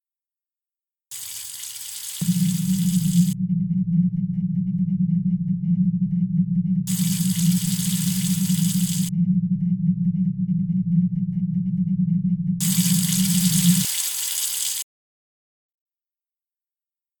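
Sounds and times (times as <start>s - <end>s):
ambient soundscape: 2.2s - 13.9s.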